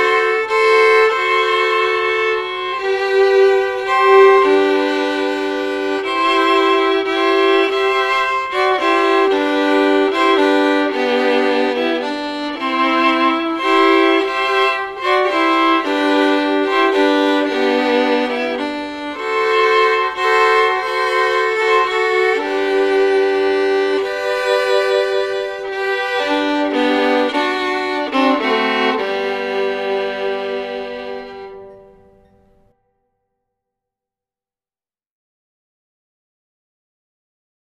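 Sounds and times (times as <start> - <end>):
fiddle playing Christmas music: 0.0 - 32.7.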